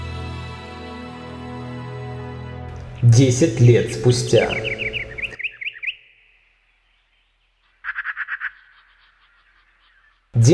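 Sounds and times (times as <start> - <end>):
birds singing: 2.7 - 10.5
speech: 3.0 - 4.8
tree crowns rustling in a light breeze: 4.4 - 10.4.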